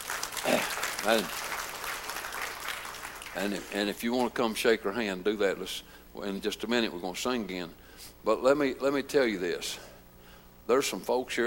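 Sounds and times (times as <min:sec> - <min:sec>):
applause: 0:00.0 - 0:04.0
speech: 0:00.4 - 0:01.5, 0:03.4 - 0:09.9, 0:10.7 - 0:11.4.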